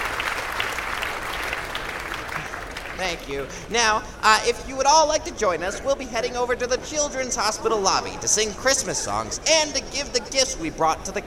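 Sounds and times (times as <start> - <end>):
audience applause for children: 0.0 - 3.7
speech: 3.0 - 11.2.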